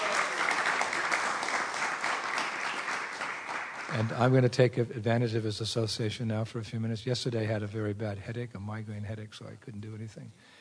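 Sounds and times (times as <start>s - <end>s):
audience applause: 0.0s - 4.4s
speech: 3.9s - 10.5s.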